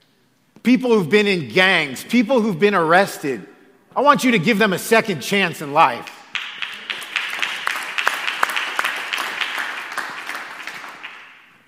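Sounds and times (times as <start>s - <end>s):
speech: 0.7s - 6.2s
hands clapping: 6.0s - 11.6s.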